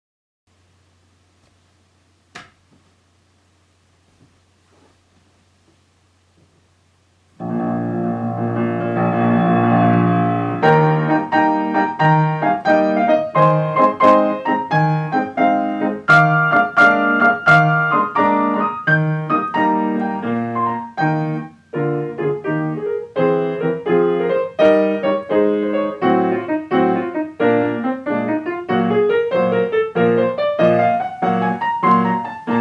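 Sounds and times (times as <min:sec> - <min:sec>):
bass: 0:07.4 - 0:32.5.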